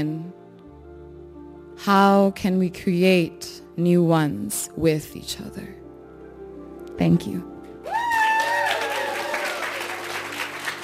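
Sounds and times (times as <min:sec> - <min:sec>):
speech: 0:00.0 - 0:00.4, 0:01.8 - 0:05.8, 0:07.0 - 0:07.5
audience applause after a poetry performance: 0:07.8 - 0:10.8
crowd cheering: 0:07.8 - 0:10.8.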